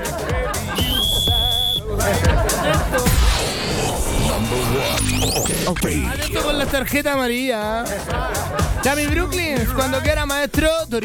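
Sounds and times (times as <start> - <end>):
laughter: 0.0 - 4.9, 7.7 - 10.1
whistle being blown: 0.7 - 1.9
speech: 5.7 - 11.0.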